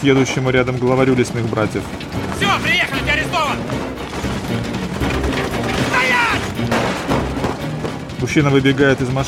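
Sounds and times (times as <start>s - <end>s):
speech: 0.0s - 3.0s, 8.2s - 9.2s
heavy gunfire volley: 4.2s - 7.9s.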